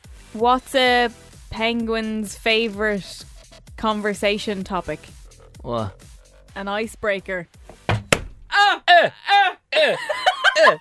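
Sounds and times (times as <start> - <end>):
speech: 0.3 - 7.7, 9.0 - 10.7
hand hitting a table hard: 7.7 - 8.5
laughter: 9.8 - 10.7.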